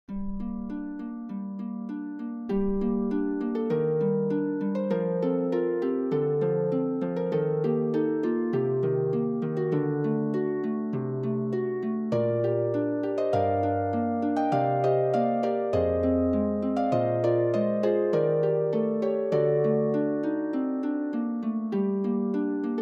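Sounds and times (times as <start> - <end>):
harp music: 0.1 - 22.7.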